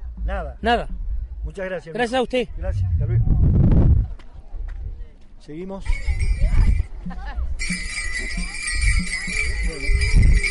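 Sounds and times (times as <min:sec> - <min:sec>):
speech: 0:00.3 - 0:03.4, 0:05.4 - 0:10.4
cascahuilla bell ringing: 0:07.6 - 0:10.4.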